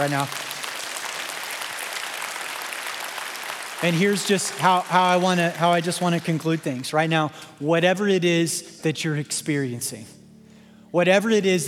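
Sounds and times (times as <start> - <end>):
speech: 0.0 - 0.4, 3.8 - 10.2, 10.9 - 11.6
crowd applauding: 0.0 - 7.4.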